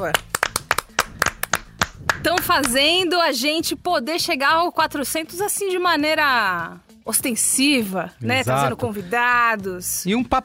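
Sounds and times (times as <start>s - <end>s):
speech: 0.0s - 0.3s, 2.2s - 10.4s
applause: 0.0s - 2.8s.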